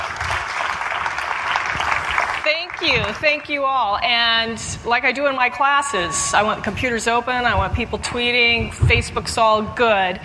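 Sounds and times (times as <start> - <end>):
audience applause at a Santa Clara University book talk: 0.0 - 3.4
speech: 2.8 - 10.2.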